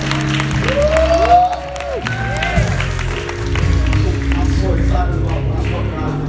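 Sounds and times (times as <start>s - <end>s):
audience applauding: 0.0s - 6.2s
whoops and cheers: 0.2s - 3.1s.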